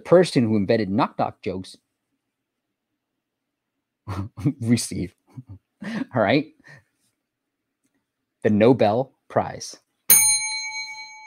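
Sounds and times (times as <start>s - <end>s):
speech: 0.0s - 1.8s, 4.1s - 6.8s, 8.4s - 9.8s
bell sound effect: 10.1s - 11.2s.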